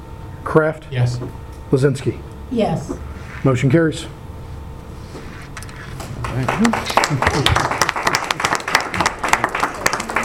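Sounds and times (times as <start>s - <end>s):
speech: 0.5s - 4.2s, 6.4s - 8.1s
applause after a motion carries: 6.2s - 10.2s.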